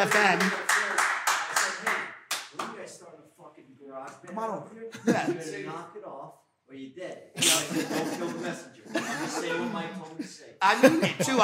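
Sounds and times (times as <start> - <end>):
speech: 0.0 - 0.8, 4.4 - 11.4
clapping sound effect: 0.0 - 2.8
laughter: 5.0 - 5.6, 7.4 - 11.4.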